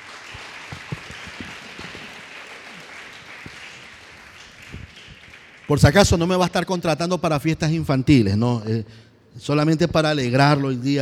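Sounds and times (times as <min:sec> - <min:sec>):
church congregation clapping in praise of the Lord: 0:00.0 - 0:06.9
speech: 0:05.7 - 0:11.0.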